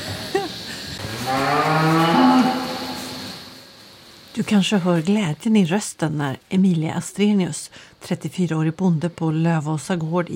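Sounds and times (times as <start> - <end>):
hum: 0.0 - 10.3
dairy cows mooing: 1.0 - 3.2
speech: 4.5 - 10.3.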